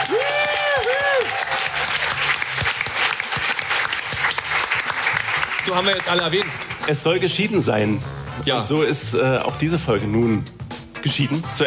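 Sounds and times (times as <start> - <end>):
person whooping: 0.0 - 1.7
audience applause: 0.0 - 7.1
speech: 5.7 - 11.6.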